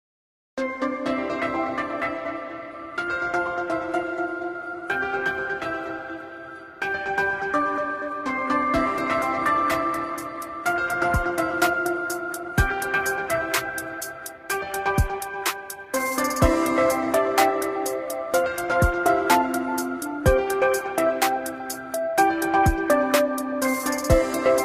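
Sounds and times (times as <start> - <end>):
electronic music: 0.6 - 24.6.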